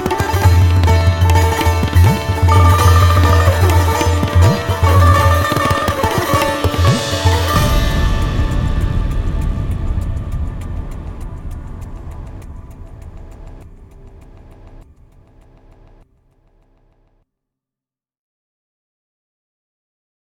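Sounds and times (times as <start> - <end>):
instrumental music: 0.0 - 16.0.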